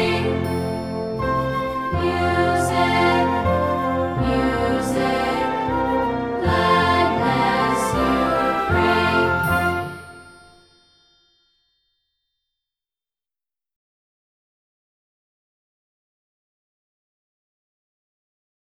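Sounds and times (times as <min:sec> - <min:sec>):
sweet music with voice: 0:00.0 - 0:10.8.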